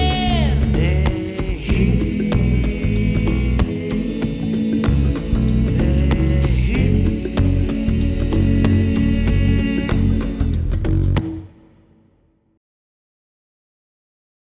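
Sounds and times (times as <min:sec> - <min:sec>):
ethnic chant: 0:00.0 - 0:10.7.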